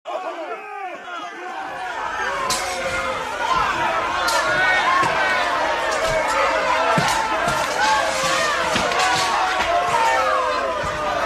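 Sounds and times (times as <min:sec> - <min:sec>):
crowd: 0:00.0 - 0:11.2
bar fight: 0:01.8 - 0:11.2.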